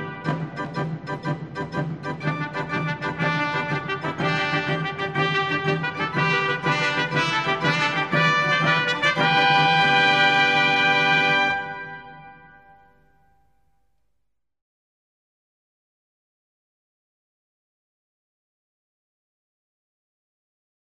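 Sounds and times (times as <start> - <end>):
trumpets: 0.0 - 0.8, 2.2 - 13.1
organ: 0.0 - 13.0.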